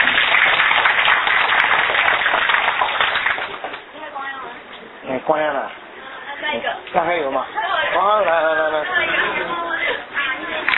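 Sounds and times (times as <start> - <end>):
audience applause: 0.0 - 3.8
speech: 5.3 - 5.8, 6.5 - 9.6.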